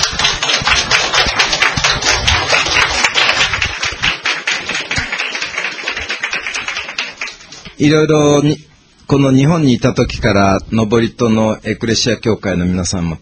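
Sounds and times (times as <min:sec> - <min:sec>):
audience applause welcoming a speaker: 0:00.0 - 0:07.7
speech: 0:07.8 - 0:13.2.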